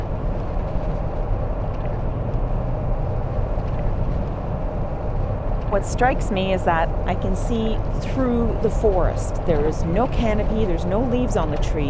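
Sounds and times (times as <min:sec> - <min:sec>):
four-wheel drive vehicle on a muddy forest track: 0:00.0 - 0:11.8
speech: 0:05.7 - 0:11.8.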